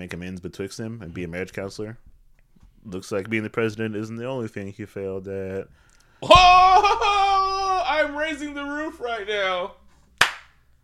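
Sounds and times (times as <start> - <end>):
speech: 0.0 - 2.1, 2.8 - 9.8
single person's sharp hand clap: 10.2 - 10.6.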